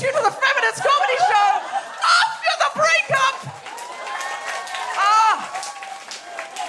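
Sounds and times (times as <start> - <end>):
laughter: 0.2 - 3.5
scattered audience applause: 1.7 - 6.6.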